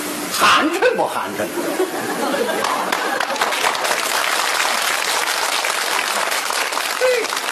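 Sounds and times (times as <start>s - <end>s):
speech: 0.6s - 3.2s, 7.0s - 7.4s
laughter: 1.5s - 4.0s
audience applause: 2.2s - 7.5s.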